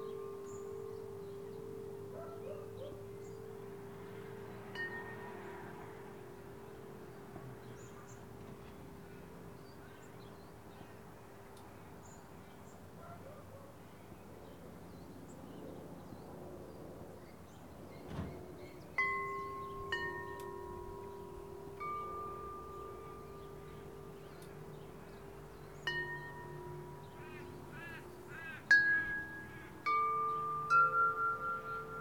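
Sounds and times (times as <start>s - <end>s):
wind chimes: 0.0s - 11.6s, 18.9s - 31.9s
local traffic: 0.0s - 31.9s
dog barking: 2.1s - 3.0s, 13.0s - 13.8s
crows cawing: 27.1s - 28.8s.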